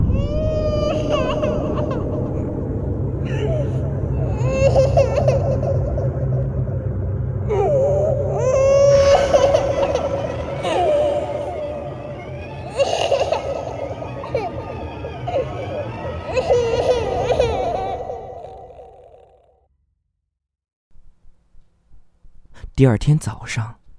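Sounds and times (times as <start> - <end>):
baby crying: 0.1 - 6.6, 7.5 - 19.6
speech: 22.8 - 23.8.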